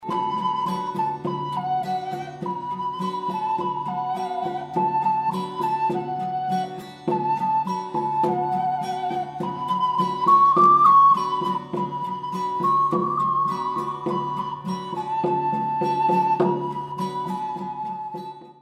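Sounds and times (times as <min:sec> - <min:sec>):
ocarina: 0:00.0 - 0:18.6.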